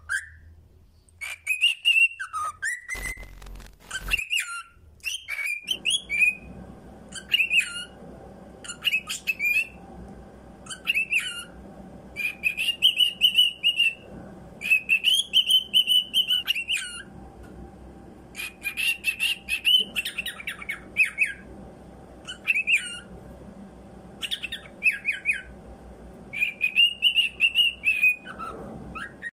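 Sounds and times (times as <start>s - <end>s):
cockatiel calls: 1.2s - 6.4s, 7.1s - 8.0s, 8.6s - 9.8s, 10.6s - 11.6s, 12.2s - 14.0s, 14.6s - 17.1s, 18.3s - 21.5s, 22.2s - 23.1s, 24.2s - 25.5s, 26.3s - 29.3s
steady low hum: 3.0s - 29.3s.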